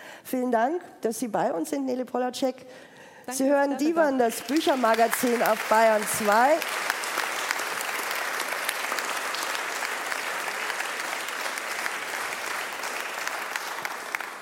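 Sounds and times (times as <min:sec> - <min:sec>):
speech: 0:00.3 - 0:06.9
live audience applause: 0:04.4 - 0:14.4.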